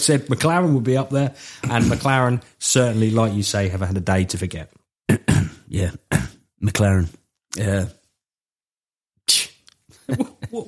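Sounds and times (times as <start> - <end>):
speech: 0.0 - 8.0, 9.3 - 9.5, 10.1 - 10.6
person coughing: 1.6 - 2.1, 5.1 - 6.4.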